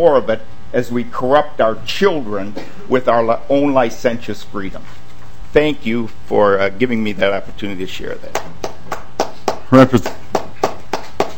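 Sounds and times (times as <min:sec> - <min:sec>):
speech: 0:00.0 - 0:08.6, 0:09.7 - 0:10.2
scattered applause during a legislative hearing: 0:08.3 - 0:11.3.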